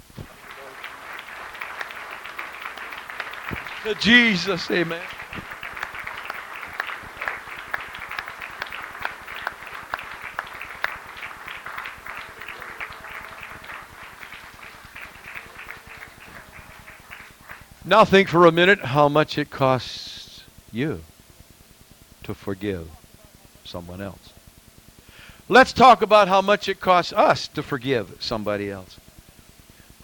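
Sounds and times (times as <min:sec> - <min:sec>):
audience clapping: 0:00.0 - 0:18.4
speech: 0:03.8 - 0:05.2, 0:17.9 - 0:20.1, 0:20.7 - 0:21.1, 0:22.3 - 0:23.0, 0:23.7 - 0:24.4, 0:25.5 - 0:29.0.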